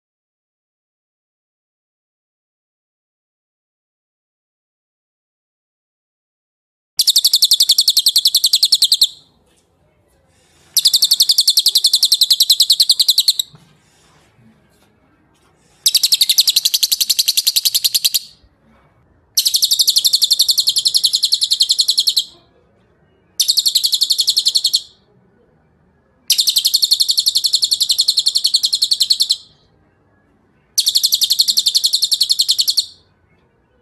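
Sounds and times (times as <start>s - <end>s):
bird trill: 7.0s - 9.3s, 10.7s - 13.6s, 15.8s - 18.4s, 19.4s - 22.5s, 23.3s - 25.1s, 26.3s - 29.7s, 30.7s - 33.2s.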